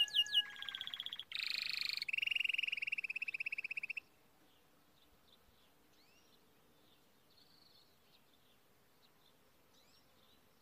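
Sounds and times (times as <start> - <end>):
Timbrado canary singing: 0.0 - 4.1.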